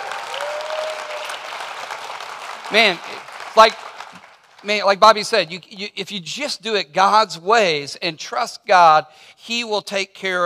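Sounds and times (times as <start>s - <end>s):
crowd clapping hands in praise: 0.0s - 4.8s
speech: 2.7s - 3.9s, 4.6s - 10.4s.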